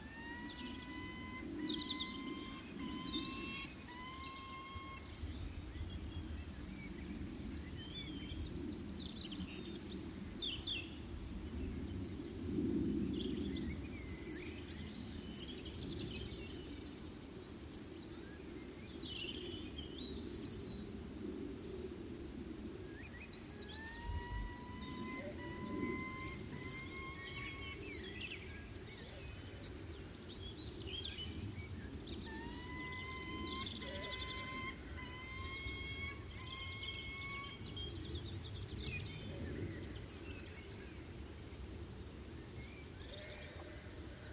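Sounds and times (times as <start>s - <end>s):
peregrines calling from crags in the Brecon Beacons: 0.0s - 5.4s, 23.4s - 28.9s, 32.2s - 38.0s
early evening bird chorus: 0.0s - 20.9s, 21.5s - 44.3s.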